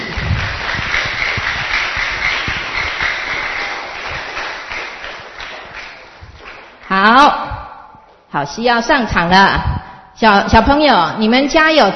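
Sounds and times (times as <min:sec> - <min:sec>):
children applauding: 0:00.0 - 0:06.9
speech: 0:08.3 - 0:11.9.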